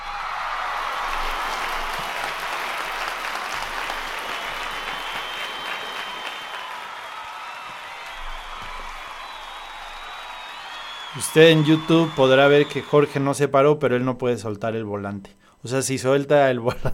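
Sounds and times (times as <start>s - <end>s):
standing ovation applause: 0.0s - 13.3s
speech: 11.2s - 16.9s.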